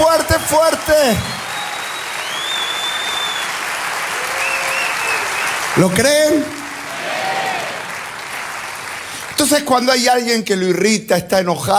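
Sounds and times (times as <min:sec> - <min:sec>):
speech: 0:00.0 - 0:01.4, 0:05.8 - 0:06.6, 0:09.4 - 0:11.7
audience applauding: 0:00.0 - 0:10.2.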